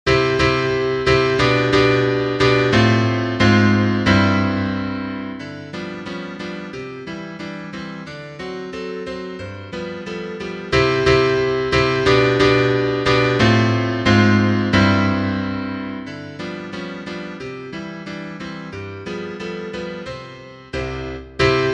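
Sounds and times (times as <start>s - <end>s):
piano: 0.0s - 21.7s.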